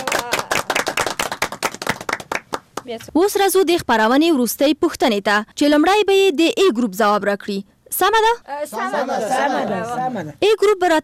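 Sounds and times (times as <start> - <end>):
quiz show audience clapping for a correct answer: 0.0 - 3.0
speech: 2.9 - 11.0.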